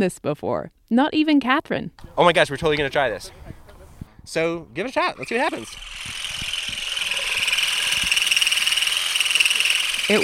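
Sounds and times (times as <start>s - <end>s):
speech: 0.0s - 3.4s, 4.2s - 6.4s, 10.1s - 10.2s
vibrating olive harvesting rake combed through branches: 5.2s - 10.2s.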